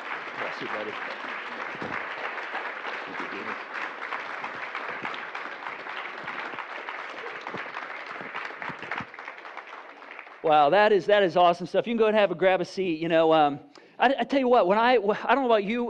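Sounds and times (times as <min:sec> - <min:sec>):
audience applause: 0:00.0 - 0:11.2
speech: 0:00.6 - 0:01.8, 0:10.5 - 0:15.8.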